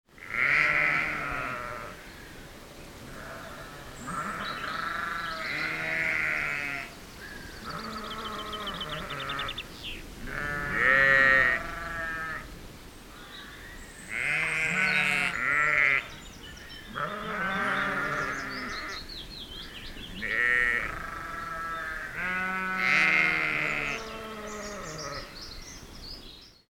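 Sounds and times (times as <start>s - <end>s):
sheep bleating: 0.2s - 2.0s, 3.1s - 6.9s, 10.2s - 12.4s, 14.1s - 16.1s, 16.9s - 19.0s, 20.2s - 25.4s.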